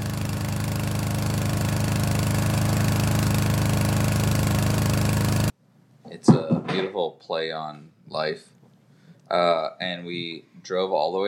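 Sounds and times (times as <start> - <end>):
diesel-powered garage door opener running: 0.0 - 5.5
speech: 6.2 - 8.6, 9.3 - 11.2.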